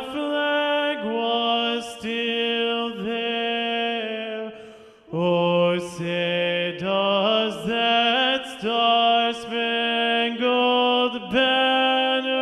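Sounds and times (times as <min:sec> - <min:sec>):
baritone voice singing third part of three-part mixed choir: 0:00.0 - 0:12.4.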